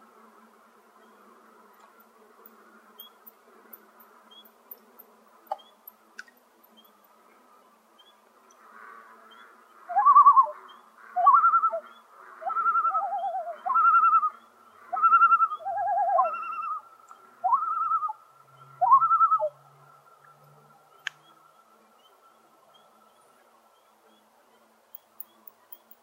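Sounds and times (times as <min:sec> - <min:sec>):
common loon calling: 0:09.3 - 0:19.6.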